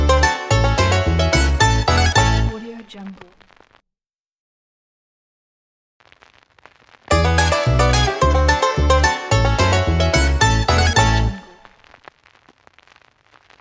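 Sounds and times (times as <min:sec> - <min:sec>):
bluegrass logo jingle: 0:00.0 - 0:02.7, 0:07.1 - 0:11.7.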